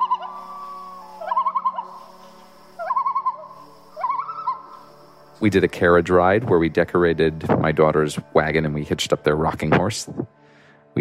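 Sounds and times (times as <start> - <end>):
common loon calls: 0.0 - 4.9
speech: 5.4 - 10.4.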